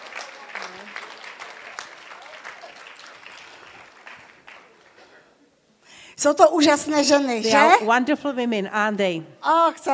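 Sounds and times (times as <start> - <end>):
audience clapping at a bilingual Czech and English church gathering: 0.0 - 5.3
speech: 6.2 - 9.9.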